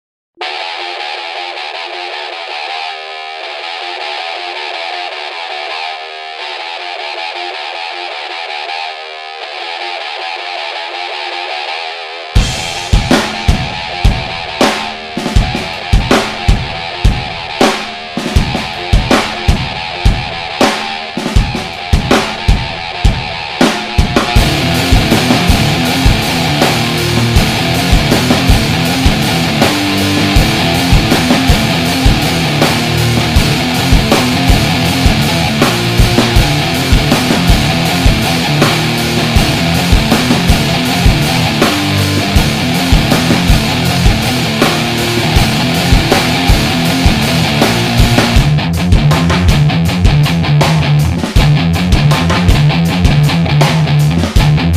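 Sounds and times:
instrumental music: 0.4 - 54.7.

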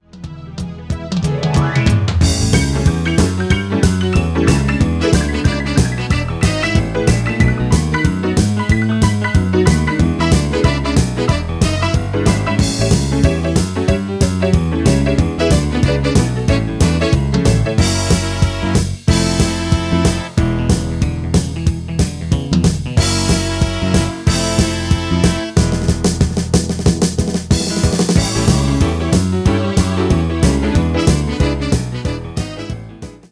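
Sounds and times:
country rock music: 0.0 - 33.3.

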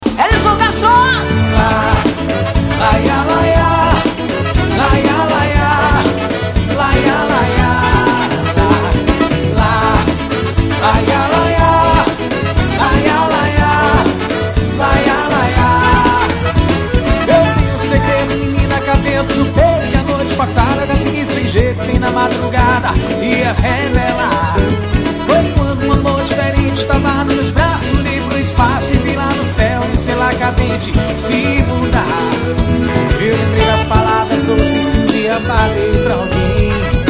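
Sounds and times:
live forro music: 0.0 - 37.0.

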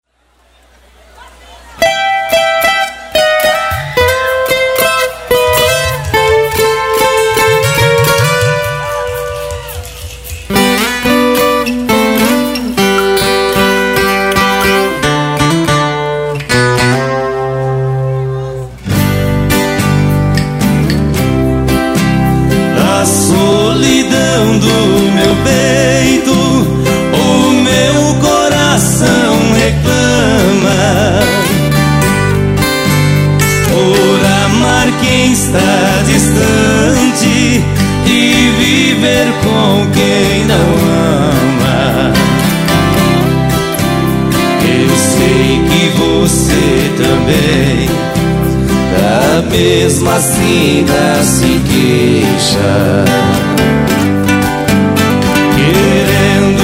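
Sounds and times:
live medley of toadas: 0.4 - 56.6.

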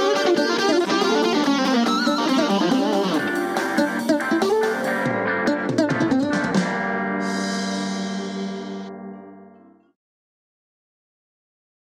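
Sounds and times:
electronic music: 0.0 - 9.4.

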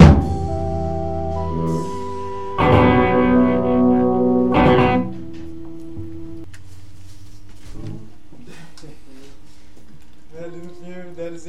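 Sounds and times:
chords: 0.0 - 6.5.

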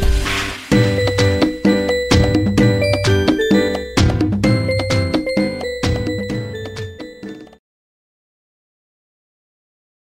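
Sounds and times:
funk music: 0.0 - 7.6.

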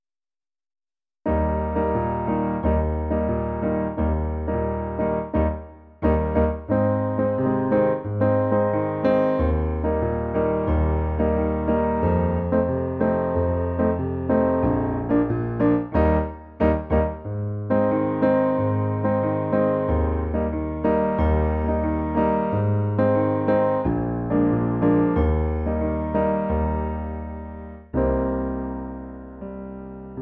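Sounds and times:
xote music: 1.3 - 30.1.

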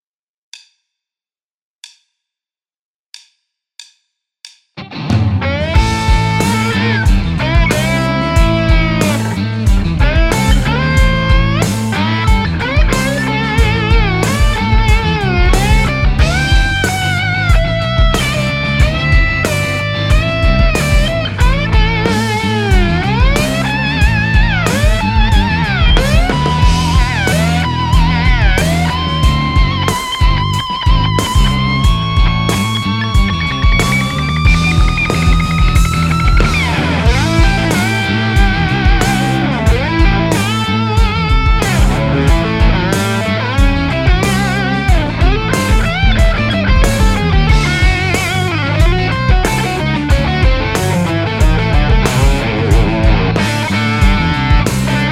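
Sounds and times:
improvised rock blues guitar: 4.8 - 55.1.

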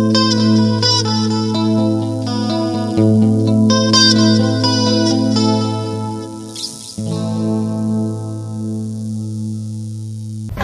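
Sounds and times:
acoustic guitar playing: 0.1 - 8.6.

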